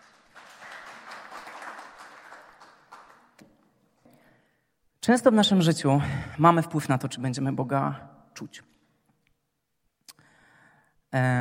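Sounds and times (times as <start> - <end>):
audience applause: 0.0 - 3.4
speech: 5.0 - 8.7, 11.1 - 11.3.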